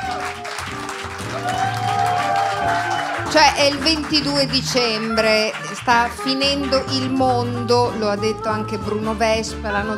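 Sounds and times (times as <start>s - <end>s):
audience applause: 0.0s - 7.4s
speech: 3.3s - 9.9s.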